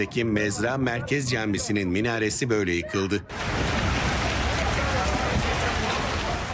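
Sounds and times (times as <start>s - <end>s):
speech: 0.0s - 3.8s
heavy rain during a storm: 3.3s - 6.5s.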